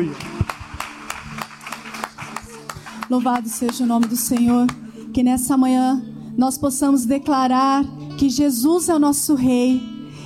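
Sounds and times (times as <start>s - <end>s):
speech: 0.0s - 0.3s, 3.1s - 9.9s
audience clapping: 0.0s - 4.8s.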